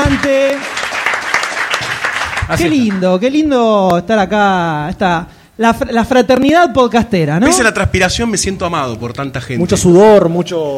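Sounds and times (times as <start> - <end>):
crowd applause: 0.0 - 3.0
speech: 0.2 - 0.8, 2.5 - 10.7.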